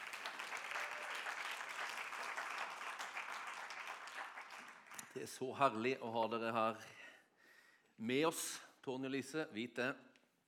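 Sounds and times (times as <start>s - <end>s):
audience applause: 0.0s - 5.1s
speech: 5.2s - 7.0s, 8.0s - 10.1s.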